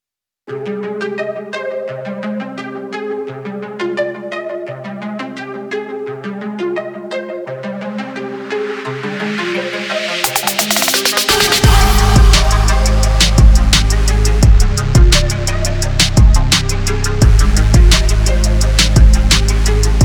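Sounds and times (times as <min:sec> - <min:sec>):
dramatic music without vocals: 0:08.3 - 0:20.0.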